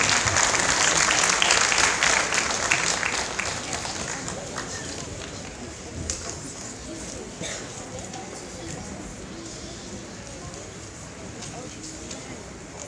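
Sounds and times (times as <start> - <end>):
audience applauding: 0.0 - 5.7.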